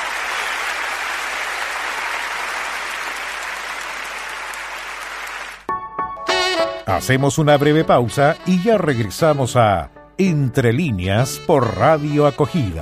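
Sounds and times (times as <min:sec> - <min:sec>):
sizable audience applause: 0:00.0 - 0:05.7
speech: 0:06.9 - 0:12.7.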